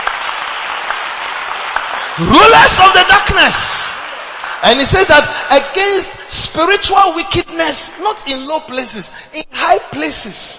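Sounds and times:
audience clapping: 0.0s - 5.7s
speech: 2.2s - 4.0s, 4.6s - 10.5s.

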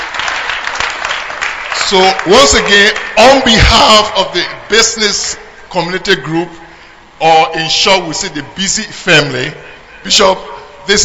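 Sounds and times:
audience clapping: 0.0s - 3.5s
speech: 1.9s - 6.6s, 7.2s - 11.0s.

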